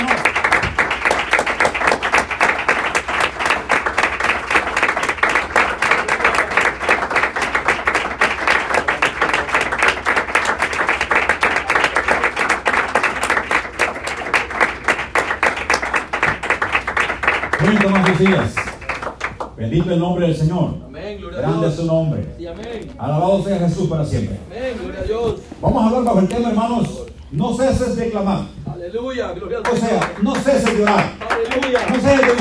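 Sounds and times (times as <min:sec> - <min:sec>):
audience applause: 0:00.0 - 0:19.5, 0:29.7 - 0:32.3
speech: 0:18.2 - 0:18.6, 0:19.6 - 0:20.8, 0:21.4 - 0:24.4, 0:25.6 - 0:31.2.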